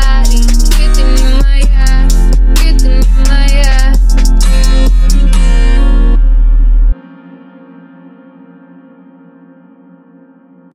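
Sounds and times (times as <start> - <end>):
39Hz low bass tone: 0.0 - 7.0.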